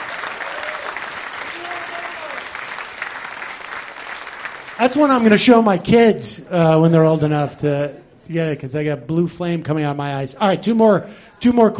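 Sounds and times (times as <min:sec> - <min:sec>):
audience applause: 0:00.0 - 0:05.4
speech: 0:04.8 - 0:11.7.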